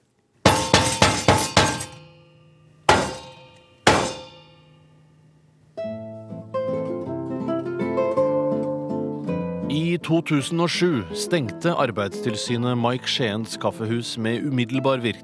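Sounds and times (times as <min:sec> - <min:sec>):
espresso portafilter knocked hard against a bin: 0:00.5 - 0:02.1
music with sustained tones: 0:05.7 - 0:14.7
speech: 0:10.0 - 0:15.2.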